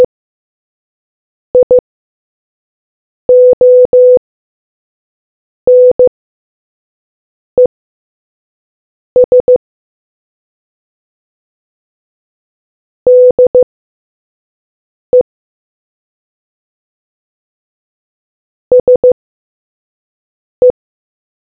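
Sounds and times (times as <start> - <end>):
morse code beeps: 1.6 - 1.8, 3.3 - 4.2, 5.7 - 6.1, 9.2 - 9.6, 13.1 - 13.6, 18.7 - 19.2.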